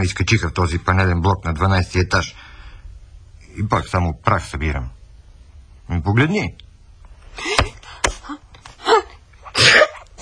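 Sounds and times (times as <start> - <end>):
speech: 0.0 - 2.4, 3.6 - 5.0, 5.9 - 6.6
person sneezing: 7.4 - 10.2.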